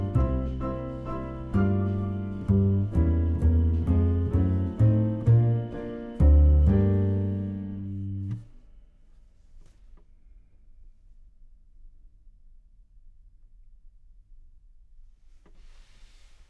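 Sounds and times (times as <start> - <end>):
contrabass: 0.0 - 8.5.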